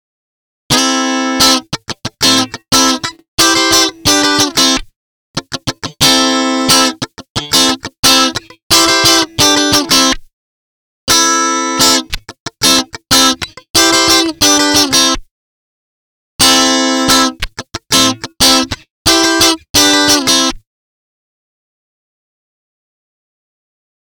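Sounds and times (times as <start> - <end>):
guitar test: 0.7 - 10.3, 11.1 - 15.3, 16.4 - 20.6.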